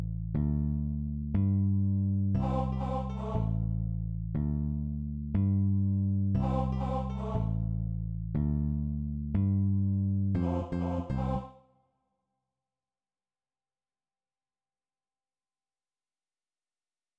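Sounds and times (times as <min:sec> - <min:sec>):
bass: 0:00.0 - 0:11.6.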